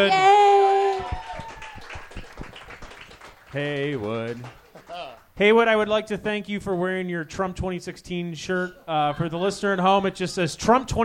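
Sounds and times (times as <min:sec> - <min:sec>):
audience clapping: 0:00.6 - 0:05.3
speech: 0:03.6 - 0:04.6, 0:05.4 - 0:11.0.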